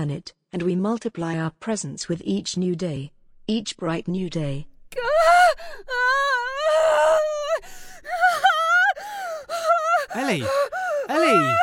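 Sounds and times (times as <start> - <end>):
speech: 0.0 - 6.2, 10.1 - 11.6
person moaning and screaming during a nightmare: 5.0 - 11.6.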